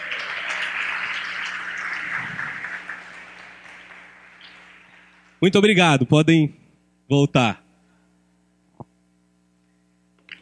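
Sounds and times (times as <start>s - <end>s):
audience applause: 0.0s - 5.6s
speech: 5.4s - 7.6s.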